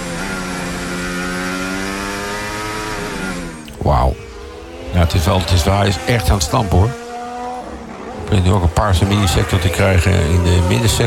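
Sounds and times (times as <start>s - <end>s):
racing car engine accelerating out of corner: 0.0s - 11.0s
speech: 3.8s - 4.2s, 4.9s - 7.0s, 8.3s - 11.0s.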